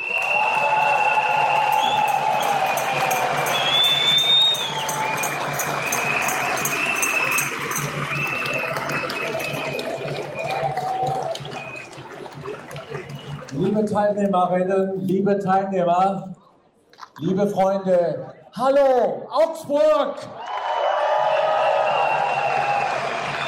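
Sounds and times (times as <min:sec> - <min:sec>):
audience applause: 0:00.0 - 0:13.9, 0:20.3 - 0:23.4
speech: 0:14.0 - 0:16.3, 0:17.2 - 0:20.4.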